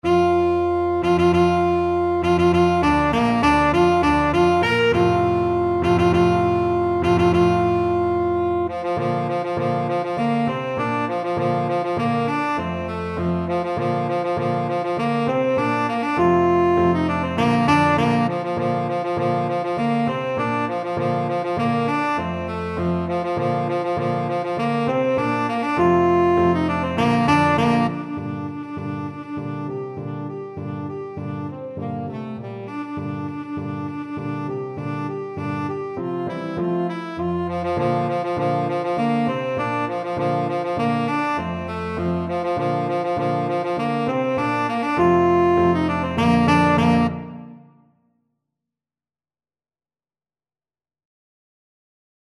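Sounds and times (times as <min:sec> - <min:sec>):
tenor saxophone: 0:00.0 - 0:47.9.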